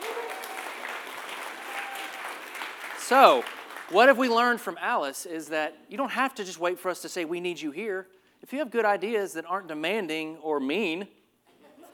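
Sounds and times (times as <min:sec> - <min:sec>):
faint whoops: 0:00.0 - 0:02.4
audience applause: 0:00.0 - 0:04.2
speech: 0:03.1 - 0:11.2.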